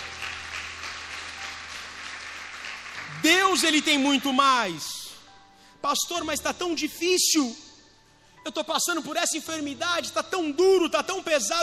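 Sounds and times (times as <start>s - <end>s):
audience applauding: 0.0s - 4.4s
speech: 3.5s - 5.0s, 5.8s - 7.7s, 8.4s - 11.6s.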